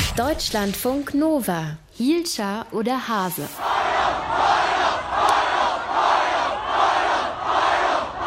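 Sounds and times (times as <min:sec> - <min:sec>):
speech: 0:00.1 - 0:05.3
huge street protest crowd chanting in Hongkong: 0:03.6 - 0:08.2.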